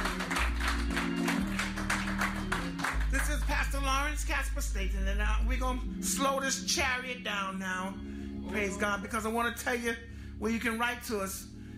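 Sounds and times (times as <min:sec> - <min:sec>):
church congregation clapping hands in praise: 0:00.0 - 0:04.0
sustained music: 0:00.0 - 0:11.7
speech: 0:04.1 - 0:11.5.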